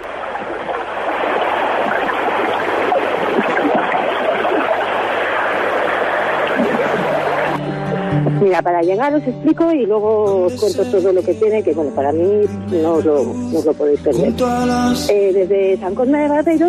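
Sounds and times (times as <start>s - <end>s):
flowing water: 0.0s - 9.0s
speech: 8.6s - 16.6s.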